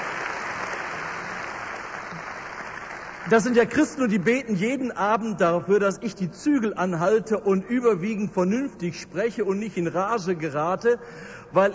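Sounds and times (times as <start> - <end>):
loud crowd applause: 0.0 - 3.6
speech: 3.3 - 11.7.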